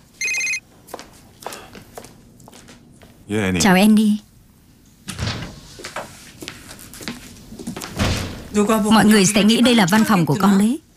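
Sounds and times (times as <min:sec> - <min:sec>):
telephone ringing: 0:00.2 - 0:00.6
speech: 0:03.3 - 0:04.3, 0:08.6 - 0:10.9.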